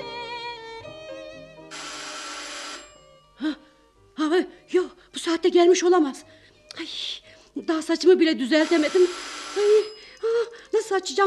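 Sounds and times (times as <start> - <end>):
harsh buzzing burst: 1.7 - 2.9, 8.6 - 9.9
electronic doorbell multi-note melodic chime: 1.7 - 3.5, 9.1 - 10.6
speech: 5.4 - 6.3, 7.6 - 9.7, 10.9 - 11.2.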